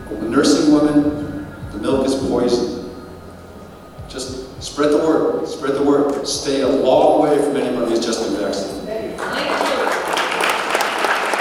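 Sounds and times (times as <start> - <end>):
speech: 0.1 - 2.8, 4.7 - 9.5
large crowd applauding: 9.2 - 11.4.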